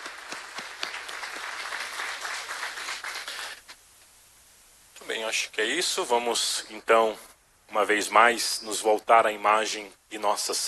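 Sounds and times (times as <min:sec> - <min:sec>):
crowd applauding: 0:00.0 - 0:03.6
speech: 0:05.3 - 0:10.6.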